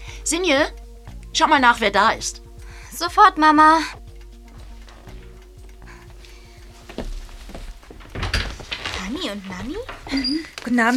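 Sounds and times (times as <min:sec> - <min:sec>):
speech: 0:00.3 - 0:02.4, 0:03.0 - 0:04.0, 0:09.2 - 0:10.9
timid knocking on a door: 0:04.5 - 0:10.5.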